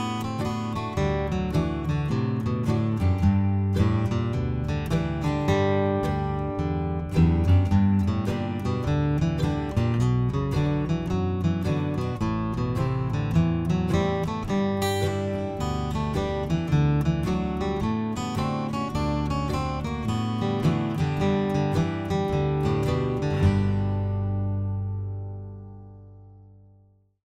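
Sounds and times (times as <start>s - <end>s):
slow hoedown guitar variation: 0.0s - 26.7s.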